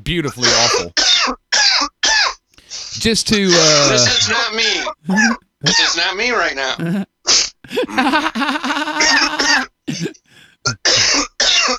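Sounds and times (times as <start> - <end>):
speech: 0.0 - 1.9, 3.0 - 7.1, 7.7 - 11.7
cough: 0.4 - 2.4, 7.7 - 11.7
laughter: 5.1 - 5.9, 6.8 - 7.1, 7.7 - 10.4.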